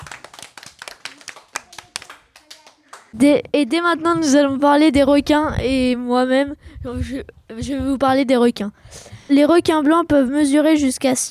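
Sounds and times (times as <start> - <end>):
group of people applauding: 0.0 - 3.2
speech: 3.1 - 11.2.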